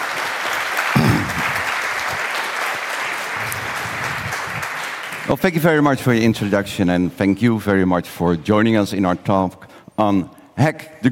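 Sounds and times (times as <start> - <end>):
audience applause: 0.0 - 5.7
speech: 5.3 - 11.1.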